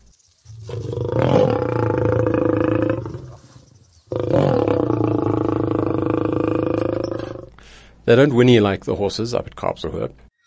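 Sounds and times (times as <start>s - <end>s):
lion roaring: 0.6s - 7.5s
speech: 8.1s - 10.2s.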